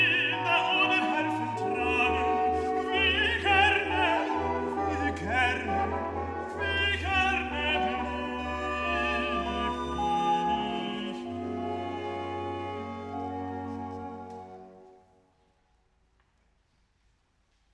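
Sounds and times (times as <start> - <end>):
madrigal choir singing: 0.0 - 13.9.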